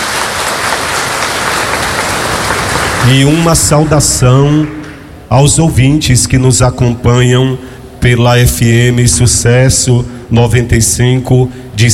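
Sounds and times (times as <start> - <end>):
crowd applause: 0.0 - 5.0
speech: 3.1 - 11.9.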